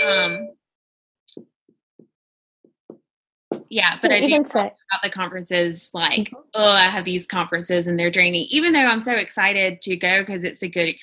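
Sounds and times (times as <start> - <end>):
device notification chime: 0.0 - 0.5
speech: 0.1 - 0.6, 1.3 - 1.6, 3.7 - 11.0.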